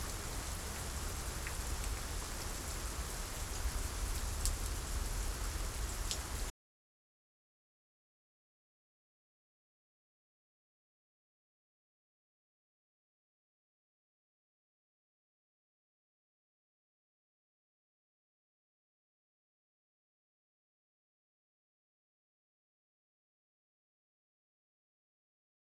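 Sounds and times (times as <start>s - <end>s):
strong monotone rain: 0.0s - 6.5s.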